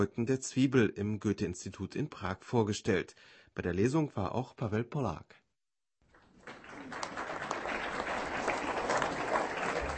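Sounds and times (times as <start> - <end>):
speech: 0.0 - 5.4
long applause welcoming Günter Grass: 6.1 - 9.9.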